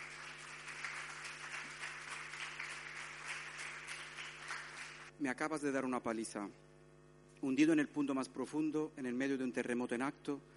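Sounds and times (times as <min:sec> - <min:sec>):
loud applause: 0:00.0 - 0:05.1
speech: 0:05.2 - 0:06.6, 0:07.4 - 0:10.5.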